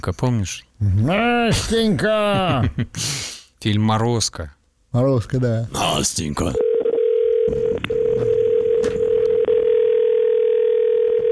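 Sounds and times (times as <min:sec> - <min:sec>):
speech: 0:00.0 - 0:06.7, 0:07.5 - 0:07.7
American telephone ringback tone: 0:06.6 - 0:11.3.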